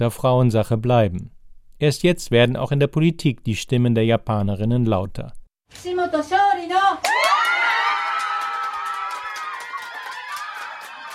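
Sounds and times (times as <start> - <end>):
speech: 0.0 - 7.4
crowd cheering over the election win of Satako Kishimoto: 7.0 - 11.1.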